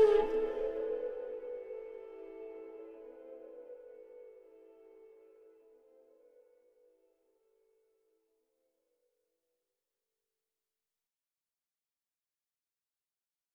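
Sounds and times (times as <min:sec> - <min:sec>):
flute: 0:00.0 - 0:07.8.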